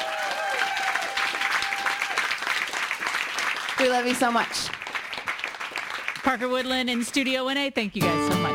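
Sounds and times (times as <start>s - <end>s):
studio audience applause: 0.0s - 6.5s
speech: 3.8s - 4.8s, 6.2s - 8.4s.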